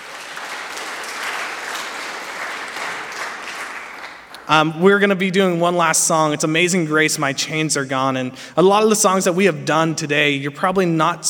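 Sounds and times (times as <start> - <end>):
audience applause: 0.0 - 4.6
speech: 4.5 - 11.2.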